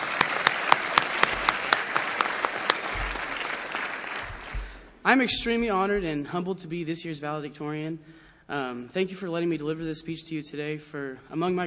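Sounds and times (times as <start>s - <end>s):
audience applause: 0.0s - 4.9s
speech: 5.0s - 11.6s.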